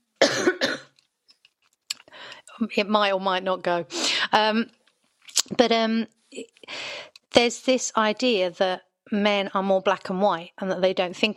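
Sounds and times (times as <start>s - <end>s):
person clearing throat: 0.2s - 1.0s
person coughing: 0.2s - 1.0s
speech: 2.6s - 4.8s, 5.5s - 6.8s, 7.4s - 11.3s.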